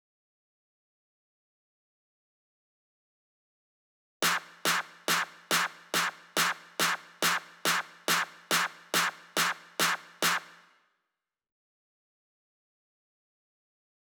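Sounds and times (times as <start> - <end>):
drum clap snare: 4.2 - 10.7.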